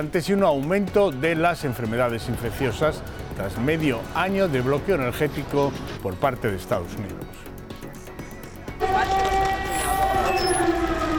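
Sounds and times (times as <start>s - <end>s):
speech: 0.0s - 7.5s
air raid sirens in Kiev: 8.8s - 11.1s.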